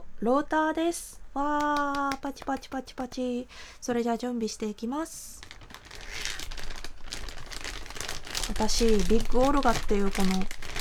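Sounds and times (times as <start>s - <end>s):
speech: 0.2s - 5.5s, 8.5s - 10.6s
plastic zipper bag crinkling: 1.4s - 3.2s, 4.7s - 10.7s.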